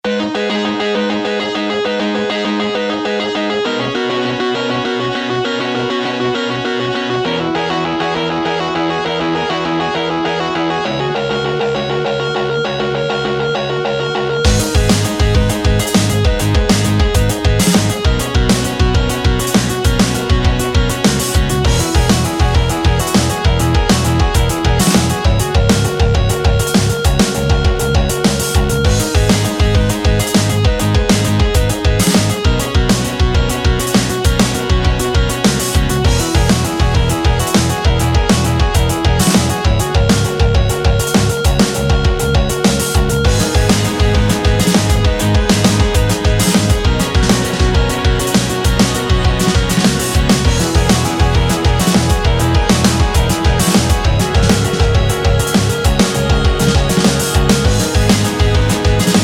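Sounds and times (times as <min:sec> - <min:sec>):
drums: 0:00.0 - 0:59.2.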